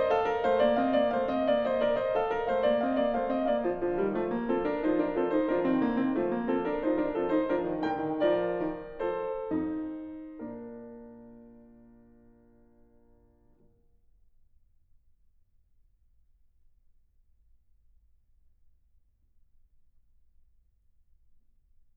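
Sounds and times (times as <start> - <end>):
keyboard fugue in B-flat: 0.0 - 13.4.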